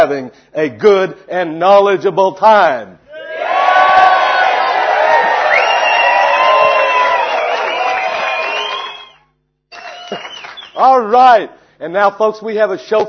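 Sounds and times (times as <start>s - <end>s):
speech: 0.0s - 3.5s, 10.1s - 13.0s
crowd cheering with whoops and shouts: 3.1s - 10.8s.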